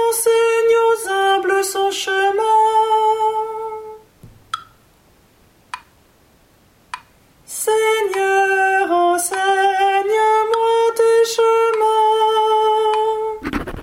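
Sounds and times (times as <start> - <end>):
soprano singing a psalm: 0.0 - 4.2, 7.5 - 13.4.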